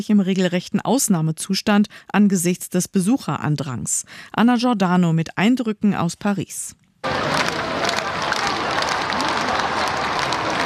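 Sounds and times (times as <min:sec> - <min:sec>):
speech: 0:00.0 - 0:07.5
large outdoor crowd cheering and applauding: 0:07.0 - 0:10.6.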